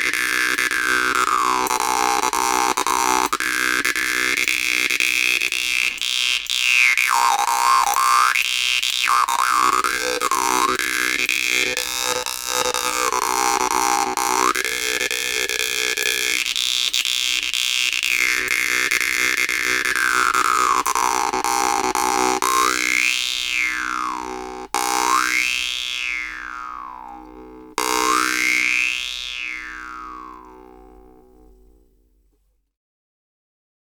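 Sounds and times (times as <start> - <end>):
jew's harp improvisation: 0.0 - 32.0.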